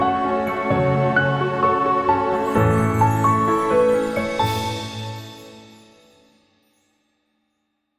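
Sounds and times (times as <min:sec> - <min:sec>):
romantic piano music: 0:00.0 - 0:06.3.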